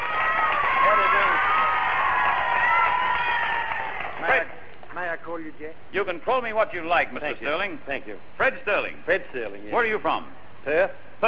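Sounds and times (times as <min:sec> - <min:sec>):
large beach crowd at Scarborough Beach in Perth cheering and whooping: 0:00.0 - 0:04.4
large beach crowd at Scarborough Beach in Perth clapping: 0:00.0 - 0:04.9
speech: 0:05.4 - 0:11.2.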